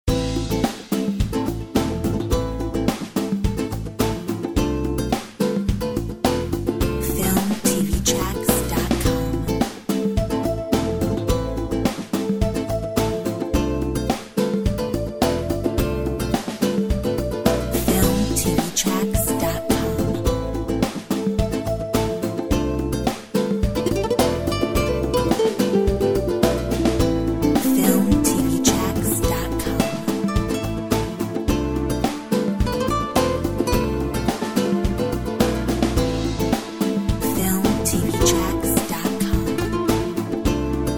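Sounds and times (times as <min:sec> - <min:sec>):
flamenco music: 0:00.0 - 0:40.9.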